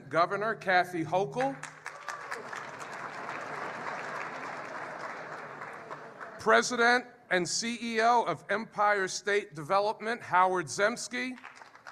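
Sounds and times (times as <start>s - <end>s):
speech: 0.1s - 1.7s, 6.4s - 11.5s
audience applause: 1.6s - 6.5s, 11.4s - 11.9s.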